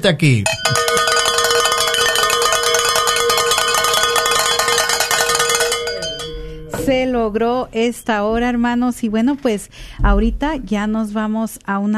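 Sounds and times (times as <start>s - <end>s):
speech: 0.0s - 0.8s, 6.9s - 11.9s
bells ringing: 0.5s - 8.3s.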